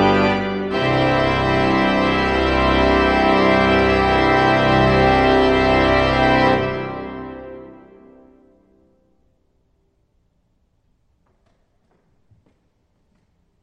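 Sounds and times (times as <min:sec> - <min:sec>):
processional music: 0:00.0 - 0:08.7.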